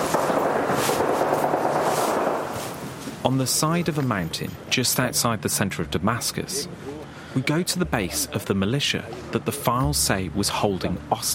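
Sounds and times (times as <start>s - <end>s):
distant gunfire: 0.0s - 2.8s
speech: 3.2s - 11.3s.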